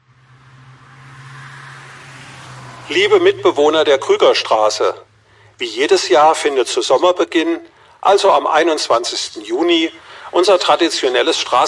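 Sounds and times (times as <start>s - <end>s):
car driving past: 0.0s - 5.6s
speech: 2.9s - 11.6s.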